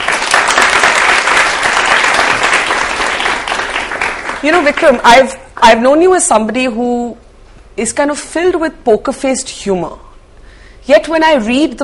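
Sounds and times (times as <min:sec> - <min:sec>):
audience applause welcoming a poet at a town hall event: 0:00.0 - 0:05.3
speech: 0:04.4 - 0:07.2, 0:07.8 - 0:10.0, 0:10.9 - 0:11.8.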